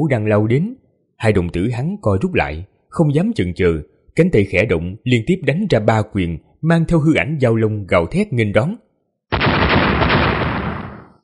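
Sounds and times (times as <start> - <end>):
speech: 0.0 - 8.8
loud explosions in quick succession: 9.3 - 11.2.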